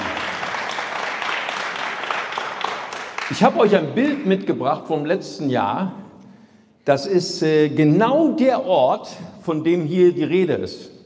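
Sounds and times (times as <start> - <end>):
church congregation applauding during a service: 0.0 - 4.4
speech: 3.3 - 6.0, 6.9 - 11.0.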